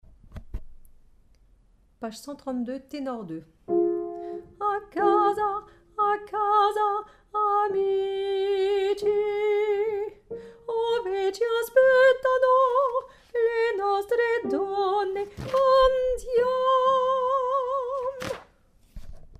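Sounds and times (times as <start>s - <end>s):
tenor singing: 3.7s - 18.2s.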